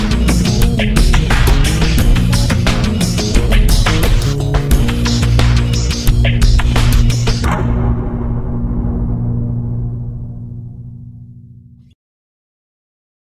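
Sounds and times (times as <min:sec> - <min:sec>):
remixed uptempo acid music: 0:00.0 - 0:09.1.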